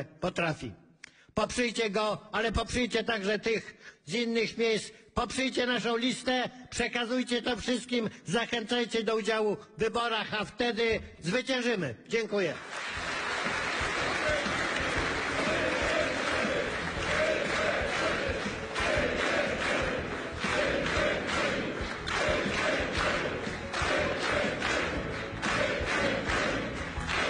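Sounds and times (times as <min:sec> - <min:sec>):
speech: 0:00.0 - 0:00.8, 0:01.4 - 0:13.6
large crowd clapping: 0:12.5 - 0:27.2
large crowd shouting: 0:14.2 - 0:27.2.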